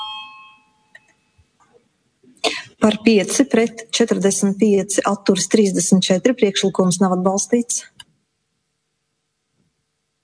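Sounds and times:
bell ringing to call a parliamentary vote: 0:00.0 - 0:01.4
speech: 0:02.8 - 0:08.0.

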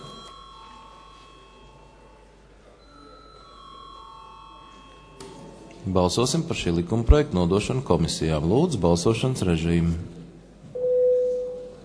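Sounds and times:
parliament electric bell rung before a vote: 0:00.0 - 0:05.8
faint murmur of the parliament chamber: 0:00.0 - 0:11.8
speech: 0:05.8 - 0:10.2.

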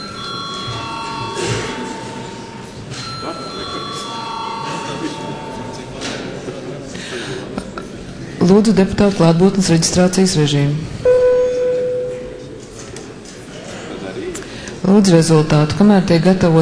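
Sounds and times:
parliament bell ringing for attendance registration: 0:00.0 - 0:06.3, 0:11.1 - 0:12.6
speech: 0:08.5 - 0:11.0, 0:14.9 - 0:16.5.

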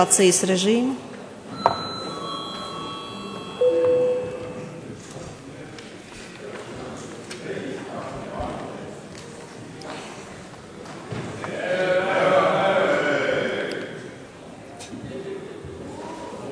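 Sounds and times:
speech: 0:00.0 - 0:01.8
murmur of voices: 0:00.0 - 0:16.5
parliament chamber bell ringing: 0:01.5 - 0:05.0
steady tone: 0:01.6 - 0:05.0.

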